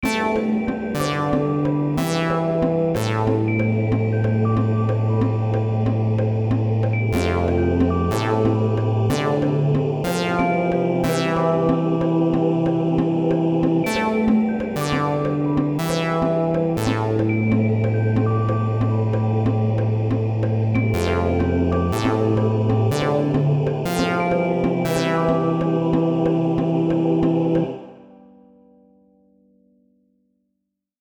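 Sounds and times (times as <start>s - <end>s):
music beat: 0.0s - 27.7s.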